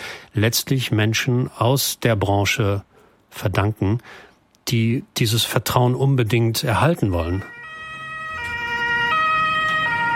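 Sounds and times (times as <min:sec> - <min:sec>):
speech: 0:00.4 - 0:07.6
ambulance siren in Germany: 0:07.1 - 0:10.1.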